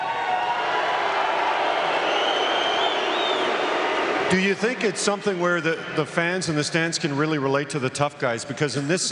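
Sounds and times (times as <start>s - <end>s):
large arena crowd cheering and applauding: 0.0s - 6.6s
speech: 4.3s - 9.1s.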